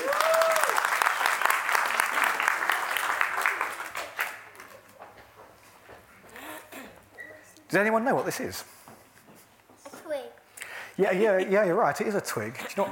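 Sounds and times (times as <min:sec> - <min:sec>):
audience applause: 0:00.0 - 0:04.9
speech: 0:07.7 - 0:08.8, 0:11.0 - 0:12.9.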